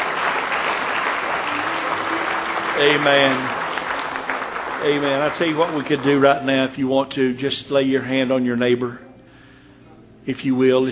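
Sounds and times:
congregation clapping hands in praise at a morning church service: 0.0s - 6.6s
speech: 2.8s - 3.5s, 4.8s - 9.0s, 10.3s - 10.9s.

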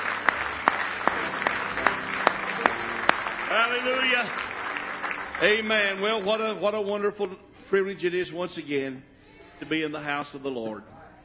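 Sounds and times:
audience hand clapping: 0.0s - 6.6s
speech: 3.6s - 4.5s, 5.4s - 10.9s.

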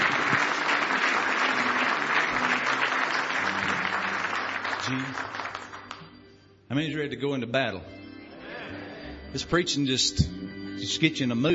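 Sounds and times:
audience hand clapping in praise: 0.0s - 6.2s
speech: 4.9s - 5.4s, 6.7s - 8.0s, 9.3s - 11.5s.

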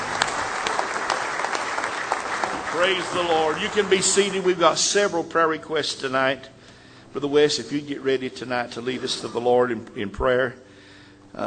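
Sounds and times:
audience applauding: 0.0s - 4.8s
speech: 2.8s - 10.6s.

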